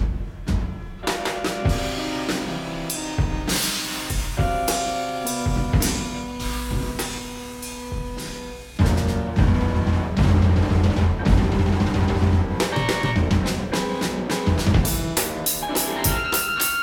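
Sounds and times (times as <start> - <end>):
drums played live: 0.0 - 16.8
piano played live: 0.0 - 16.8.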